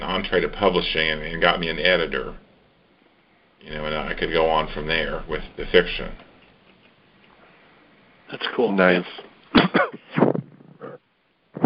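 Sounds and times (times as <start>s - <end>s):
speech: 0.2s - 2.4s, 3.6s - 6.3s, 8.3s - 10.2s
person coughing: 9.5s - 11.0s.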